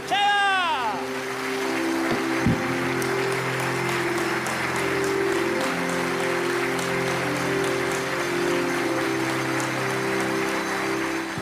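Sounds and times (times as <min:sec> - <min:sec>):
audience applause: 0:00.0 - 0:11.4.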